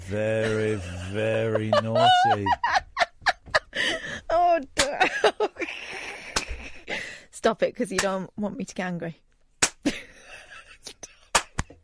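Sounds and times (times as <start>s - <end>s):
speech: 0.1s - 2.7s, 7.5s - 9.3s
laughter: 0.2s - 4.2s, 4.8s - 6.8s
hand claps: 6.3s - 6.5s, 9.6s - 9.8s, 11.3s - 11.8s.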